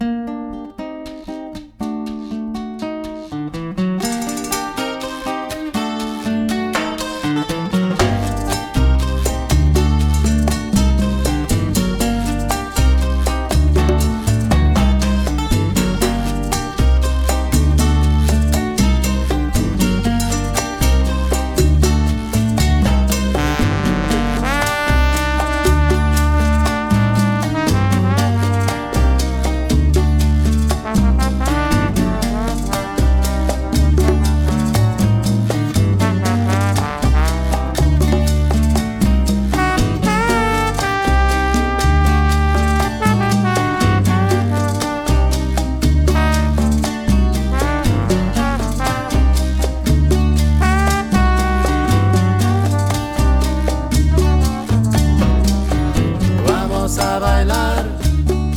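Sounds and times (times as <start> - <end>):
rumba mambo cha cha cha music: 0.6 - 58.5.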